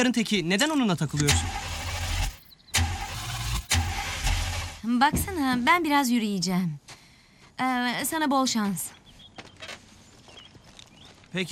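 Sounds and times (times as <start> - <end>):
speech: 0.0 - 1.7, 4.8 - 6.9, 7.6 - 9.0
engine starting: 1.2 - 4.8.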